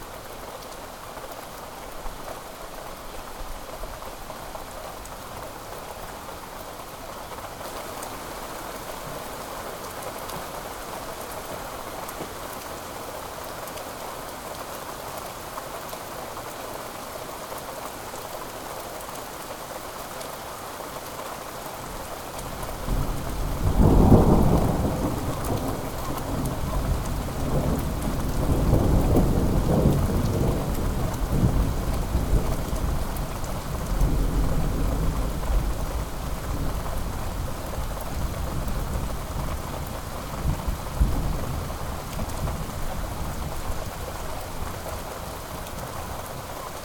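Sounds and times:
summer thunderstorm in Sannohe Japan: 22.8 - 44.7.

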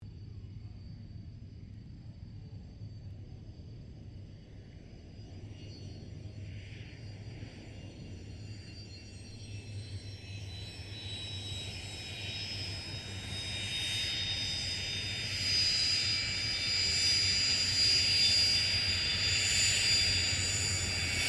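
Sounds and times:
CA-27 Sabre aircraft engine shutting down: 0.2 - 21.2
CA-27 Sabre aircraft taxiing: 3.8 - 21.2.

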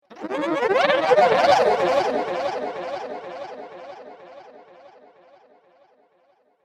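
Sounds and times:
evolving aliens science fiction sound effect: 0.1 - 4.2.

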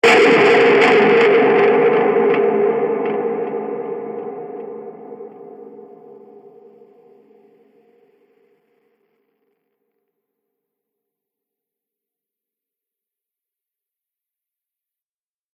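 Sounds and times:
massive distorted explosion impact: 0.0 - 7.2.

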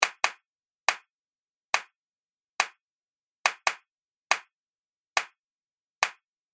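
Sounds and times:
hand clap groove: 0.0 - 1.1, 3.5 - 4.5, 5.2 - 5.4.

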